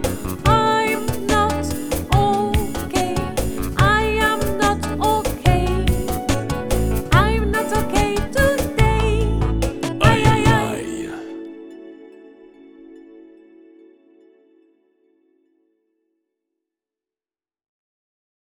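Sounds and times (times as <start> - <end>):
children's nursery song: 0.0 - 11.6.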